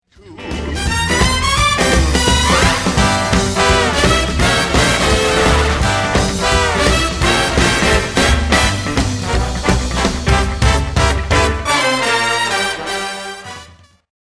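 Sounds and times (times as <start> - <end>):
swing music: 0.1 - 14.0.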